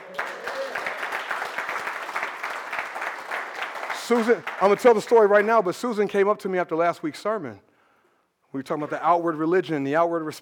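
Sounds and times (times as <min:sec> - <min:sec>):
audience clapping: 0:00.0 - 0:05.7
speech: 0:04.1 - 0:07.7, 0:08.5 - 0:10.4.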